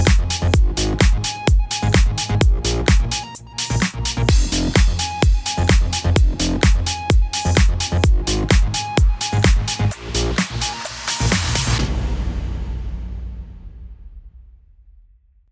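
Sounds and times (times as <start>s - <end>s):
electro house music bed in F minor: 0.0s - 11.8s.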